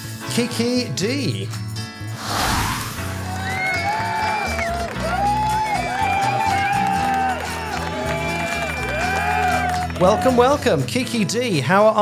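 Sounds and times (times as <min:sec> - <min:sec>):
speech: 0:00.3 - 0:01.7, 0:10.0 - 0:11.9
applause welcoming a guest: 0:02.8 - 0:10.3.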